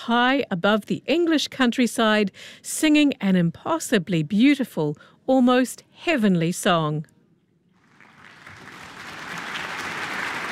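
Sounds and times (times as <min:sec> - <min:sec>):
speech: 0:00.0 - 0:07.1
concert audience applause: 0:07.8 - 0:10.5.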